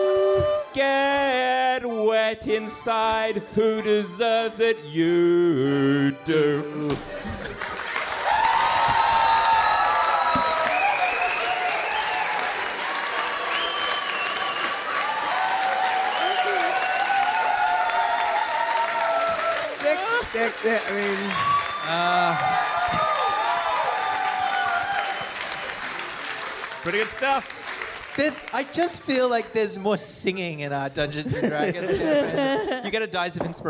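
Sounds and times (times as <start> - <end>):
speech: 0.8 - 7.6, 20.4 - 23.0, 26.9 - 27.6, 28.2 - 33.6
laughter: 7.1 - 8.2, 19.8 - 22.7, 31.0 - 33.3
clapping applause: 7.4 - 29.6.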